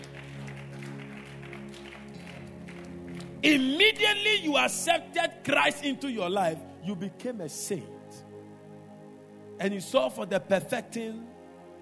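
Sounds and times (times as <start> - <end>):
audience clapping: 0.0 - 4.1
speech: 3.4 - 8.0, 9.6 - 11.3.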